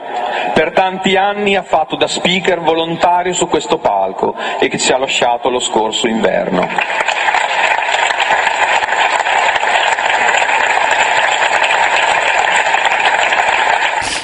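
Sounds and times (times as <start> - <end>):
speech: 0.6 - 7.1
audience applause: 6.2 - 14.2.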